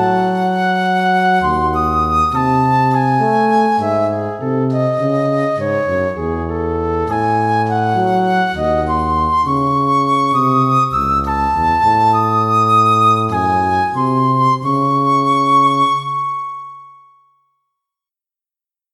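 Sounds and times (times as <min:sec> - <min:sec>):
tango for flute and tuba: 0:00.0 - 0:17.0.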